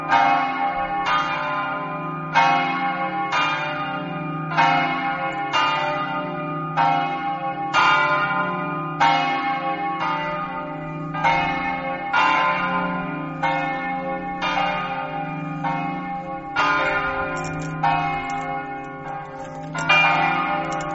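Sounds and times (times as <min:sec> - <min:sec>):
bells ringing in Povoletto: 0:00.0 - 0:20.9.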